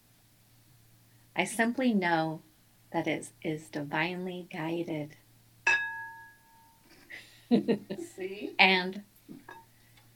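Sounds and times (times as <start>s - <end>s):
speech: 1.4s - 5.2s, 7.5s - 9.5s
bell ringing: 5.7s - 6.8s.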